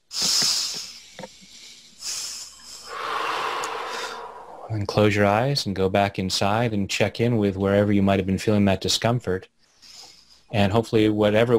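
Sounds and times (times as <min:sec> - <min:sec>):
deep breathing during a guided relaxation exercise: 0:00.2 - 0:04.9
speech: 0:04.7 - 0:09.6, 0:10.5 - 0:11.5.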